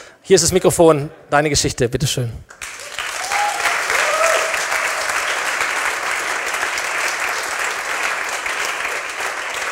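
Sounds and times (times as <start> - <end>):
speech: 0.3 - 2.6
audience applause: 2.6 - 9.6.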